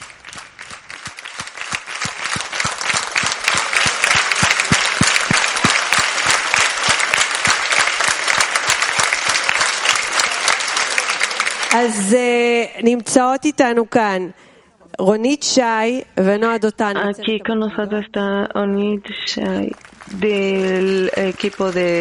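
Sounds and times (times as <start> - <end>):
audience applause: 0.0 - 12.1, 19.5 - 21.9
speech: 11.8 - 14.4, 15.0 - 21.9.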